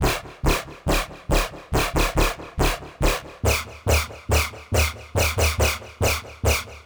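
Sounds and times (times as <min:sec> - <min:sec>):
bass: 0:00.0 - 0:06.8.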